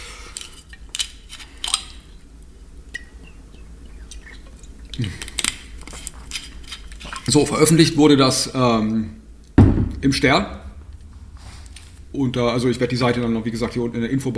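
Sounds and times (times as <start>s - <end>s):
quiet hiss: 0.0s - 14.3s
person sipping water: 4.1s - 7.3s
speech: 5.0s - 5.3s, 7.3s - 9.2s, 10.0s - 10.6s, 12.2s - 14.3s.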